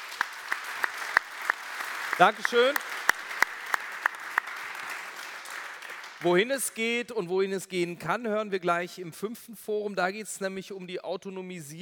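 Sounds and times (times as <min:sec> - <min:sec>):
audience applause: 0:00.0 - 0:06.7
speech: 0:02.2 - 0:03.0, 0:06.2 - 0:11.8.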